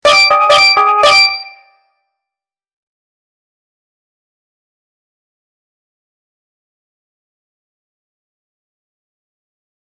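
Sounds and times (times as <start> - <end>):
theft alarm: 0.0 - 1.7.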